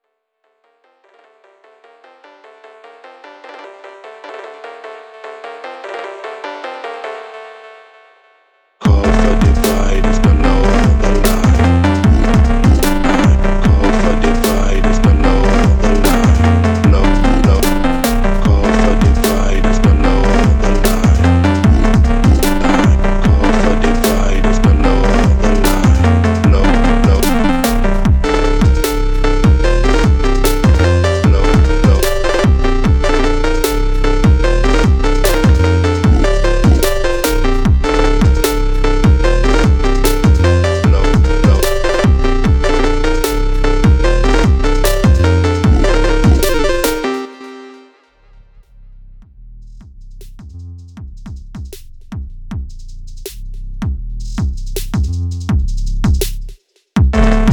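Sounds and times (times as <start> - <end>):
phonk music: 8.8 - 48.4, 49.6 - 57.5.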